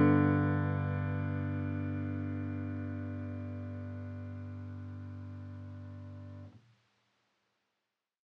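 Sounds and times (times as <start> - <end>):
Americana studio grand piano playing: 0.0 - 6.4.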